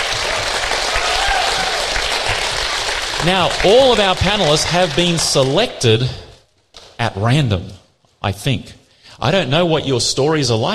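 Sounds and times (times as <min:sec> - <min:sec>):
audience applause: 0:00.0 - 0:05.8
speech: 0:03.2 - 0:06.2, 0:07.0 - 0:10.7.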